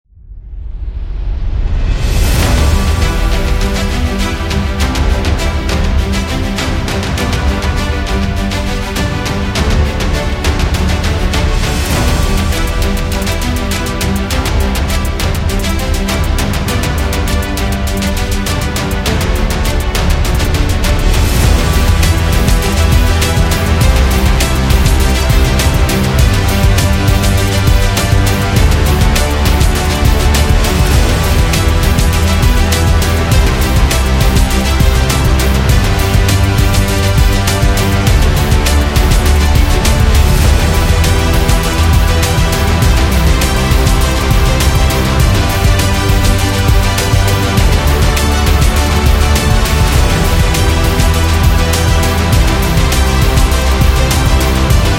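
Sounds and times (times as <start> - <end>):
epic hip hop sports music: 0.8 - 54.9.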